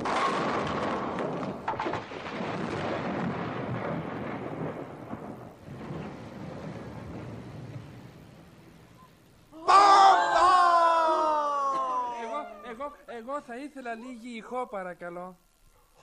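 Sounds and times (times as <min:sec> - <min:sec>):
volcano eruption sound effect roaring rumble: 0:00.0 - 0:09.1
laughter: 0:09.6 - 0:14.4
speech: 0:13.4 - 0:16.0.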